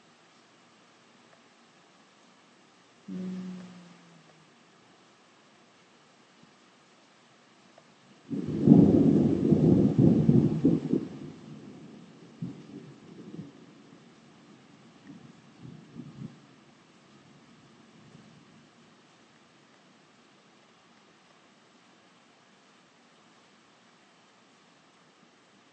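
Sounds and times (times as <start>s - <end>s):
thunder rumbling: 8.3s - 14.1s.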